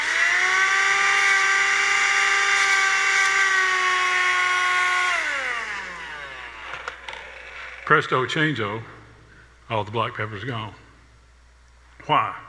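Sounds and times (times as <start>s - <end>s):
vacuum cleaner sucking up pepper: 0.0s - 6.8s
speech: 7.9s - 9.0s, 9.7s - 10.8s, 12.0s - 12.4s.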